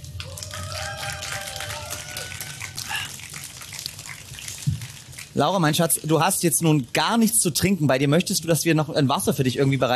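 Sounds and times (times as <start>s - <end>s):
audience applause: 0.0s - 5.4s
speech: 5.4s - 9.9s.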